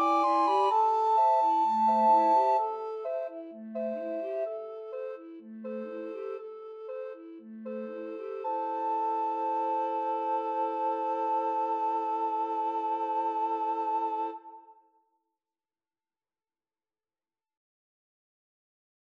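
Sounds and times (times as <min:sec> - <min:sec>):
recorder quartet playing Chanukah music: 0:00.0 - 0:14.6.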